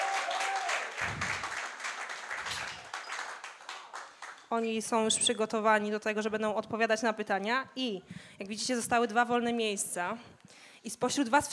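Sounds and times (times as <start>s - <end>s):
crowd applause: 0.0s - 4.4s
speech: 4.5s - 11.5s.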